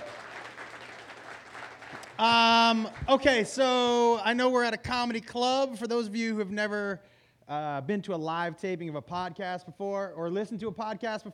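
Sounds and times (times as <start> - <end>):
audience applause: 0.0 - 3.0
speech: 2.2 - 11.3.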